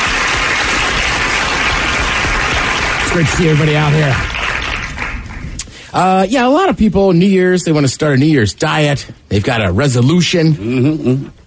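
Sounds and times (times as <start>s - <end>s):
crowd cheering and applauding to welcome a host onto a stage show: 0.0s - 5.7s
speech: 3.1s - 4.3s, 5.9s - 11.4s.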